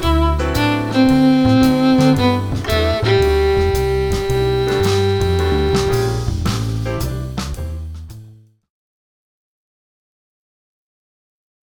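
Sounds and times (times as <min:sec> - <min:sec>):
G major scale played with rhythms: 0:00.0 - 0:07.7.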